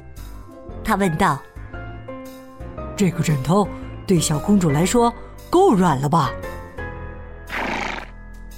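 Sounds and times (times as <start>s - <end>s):
speech: 0.9s - 1.5s, 3.0s - 6.5s
horse neighing: 7.5s - 8.1s.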